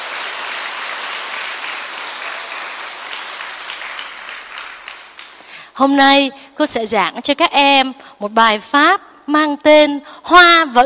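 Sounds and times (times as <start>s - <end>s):
audience applause: 0.0s - 5.5s
speech: 5.8s - 10.8s.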